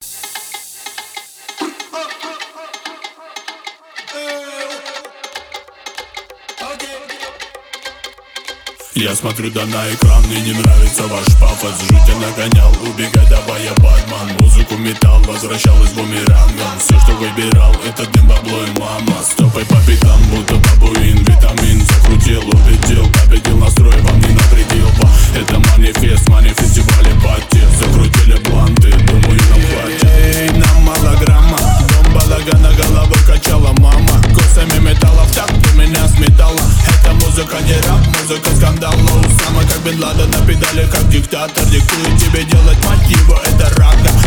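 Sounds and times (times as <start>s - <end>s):
phonk music: 0.0s - 44.2s.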